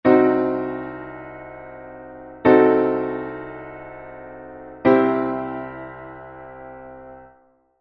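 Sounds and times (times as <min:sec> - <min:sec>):
diminished chord: 0:00.1 - 0:07.4.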